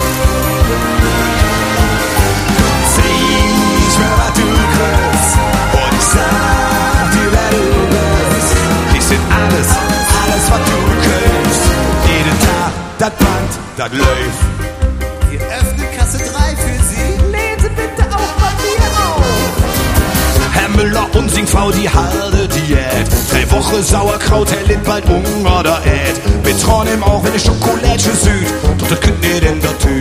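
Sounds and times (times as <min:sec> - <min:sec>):
orchestra playing live: 0:00.0 - 0:29.9.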